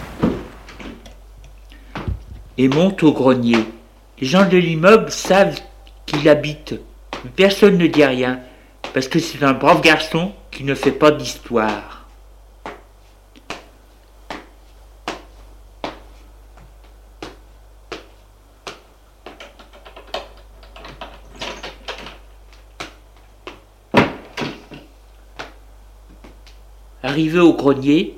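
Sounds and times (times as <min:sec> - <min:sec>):
door shutting: 0:00.0 - 0:01.1, 0:19.4 - 0:22.2
speech: 0:02.6 - 0:12.0, 0:27.2 - 0:28.1.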